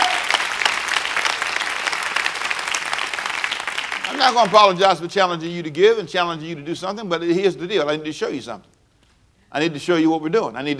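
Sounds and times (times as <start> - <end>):
audience hand clapping: 0.0 - 4.9
speech: 4.2 - 8.7, 9.5 - 10.7.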